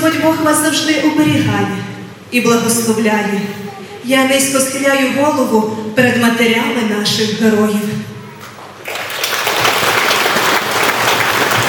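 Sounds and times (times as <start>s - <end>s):
speech: 0.1s - 8.1s
audience applause: 8.6s - 11.6s.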